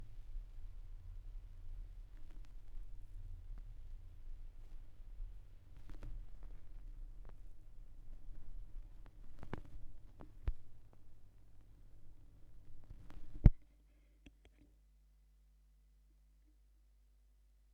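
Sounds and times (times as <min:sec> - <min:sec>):
vinyl record noise: 0:00.0 - 0:13.6.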